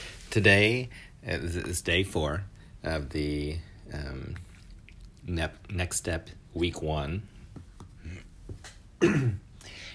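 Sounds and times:
speech: 0.4 - 4.5, 5.2 - 7.3, 8.0 - 9.8
speaker clearing throat with something caught in it: 9.0 - 9.5.

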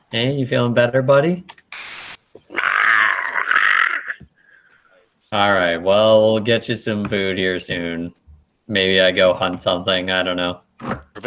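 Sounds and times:
speech: 0.1 - 1.6, 5.3 - 11.2
human voice imitating a creature's hungry growl: 2.5 - 4.2.

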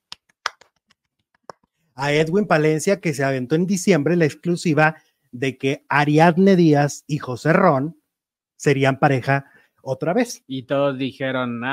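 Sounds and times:
seal-style clapping: 0.1 - 1.6
speech: 2.0 - 8.0, 8.6 - 11.7.

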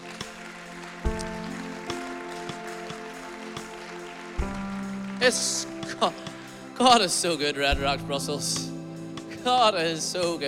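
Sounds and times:
crowd clapping: 0.0 - 7.8
sustained musical chords: 0.0 - 10.4
speech: 5.2 - 8.7, 9.4 - 10.4.

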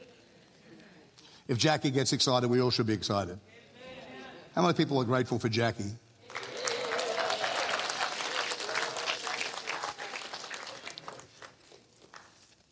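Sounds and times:
speech: 1.5 - 3.6, 4.6 - 6.0
audience applause: 6.2 - 12.4.

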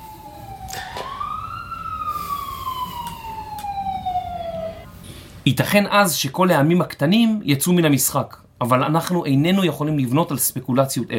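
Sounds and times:
passing emergency vehicle siren: 0.0 - 4.9
speech: 5.5 - 11.1.

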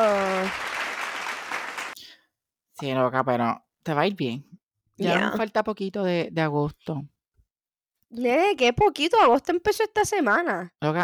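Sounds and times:
applause: 0.0 - 2.0
speech: 2.8 - 7.1, 8.1 - 11.0.

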